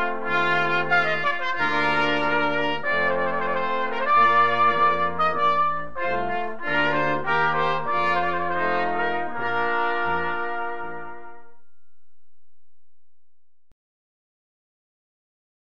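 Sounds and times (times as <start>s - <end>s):
trumpet piece: 0.0s - 11.9s.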